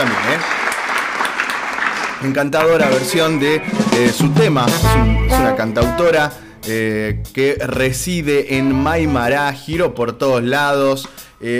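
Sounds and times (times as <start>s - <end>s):
crowd applauding: 0.0s - 4.0s
speech: 2.2s - 11.5s.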